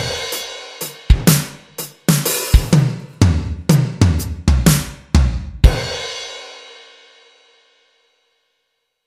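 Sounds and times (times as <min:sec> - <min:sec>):
groove music: 0:00.0 - 0:06.6.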